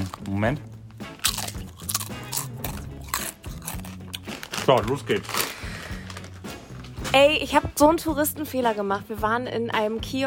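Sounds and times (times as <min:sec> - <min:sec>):
crunching of potato chips being eaten: 0:00.0 - 0:00.4, 0:01.2 - 0:07.0
speech: 0:00.0 - 0:00.8, 0:04.7 - 0:05.4, 0:07.1 - 0:10.2.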